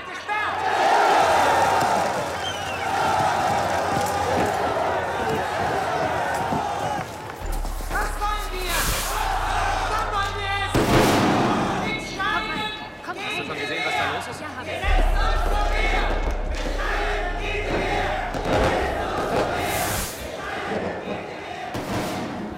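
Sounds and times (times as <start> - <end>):
crowd shouting in street battles: 0.2 - 22.1
heavy thuds and bangs: 10.0 - 13.0, 14.8 - 22.5.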